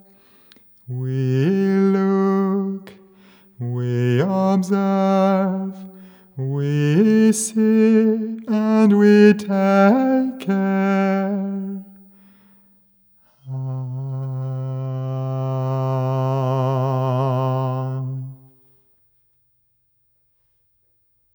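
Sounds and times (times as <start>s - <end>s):
man singing opera solo: 0.9s - 11.9s, 13.5s - 18.4s.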